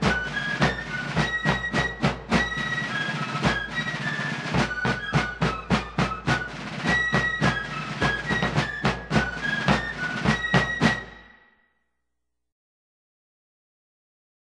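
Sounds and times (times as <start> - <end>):
drums and bugles: 0.0 - 11.5.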